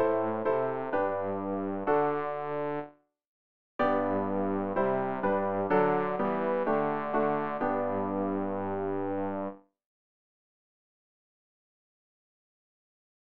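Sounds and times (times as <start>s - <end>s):
bass practice aid: 0.0s - 2.8s, 3.8s - 9.5s.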